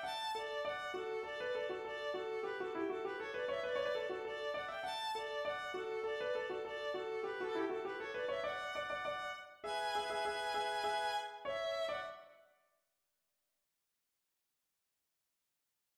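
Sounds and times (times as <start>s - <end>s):
polka melody in thirds and fifths: 0.0s - 12.3s.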